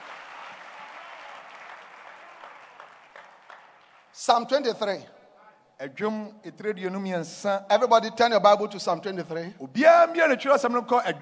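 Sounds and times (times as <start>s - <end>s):
audience clapping hands: 0.0s - 4.6s
speech: 4.2s - 5.2s, 5.8s - 11.2s.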